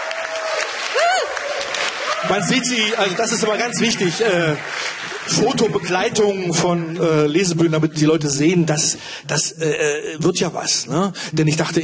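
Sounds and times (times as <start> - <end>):
person whooping: 0.0 - 2.4
audience applause at a Lesebühne reading event: 0.0 - 8.4
speech: 2.2 - 11.8.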